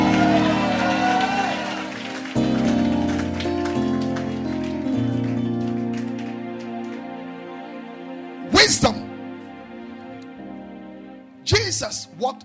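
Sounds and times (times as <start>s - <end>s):
audience clapping and cheering: 0.0s - 7.4s
sustained organ-like chords: 0.0s - 12.4s
speech: 11.8s - 12.4s.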